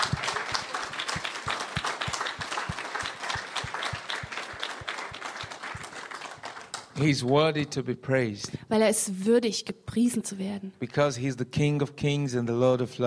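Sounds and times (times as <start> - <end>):
audience applause: 0.0 - 7.4
speech: 7.0 - 13.0.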